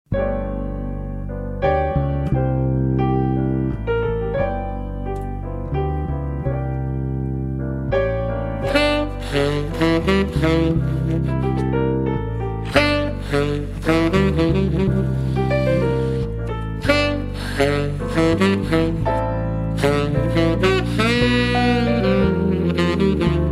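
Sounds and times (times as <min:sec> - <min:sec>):
jazz music: 0:00.1 - 0:23.5.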